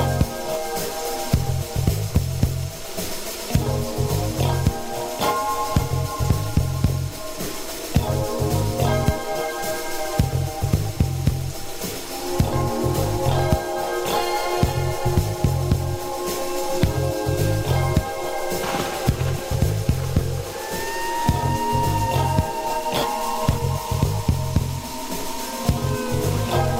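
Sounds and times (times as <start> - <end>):
rain falling: 0.0 - 26.7.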